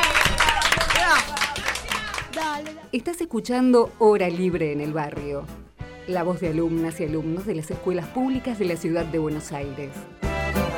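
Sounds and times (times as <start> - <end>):
applause after a singing performance: 0.0 - 2.9
speech: 2.9 - 10.2.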